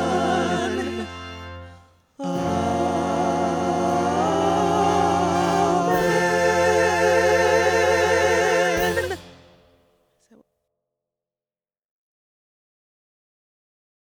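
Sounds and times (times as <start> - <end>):
ensemble playing: 0.0 - 9.7.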